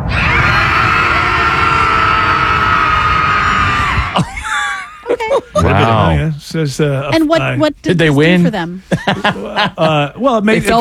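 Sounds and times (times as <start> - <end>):
people yelling: 0.1 - 4.3, 5.6 - 6.3
group of people screaming: 0.1 - 4.4
laughter: 4.0 - 6.3, 8.9 - 10.8
voices counting down: 5.1 - 6.5
speech: 5.8 - 10.8.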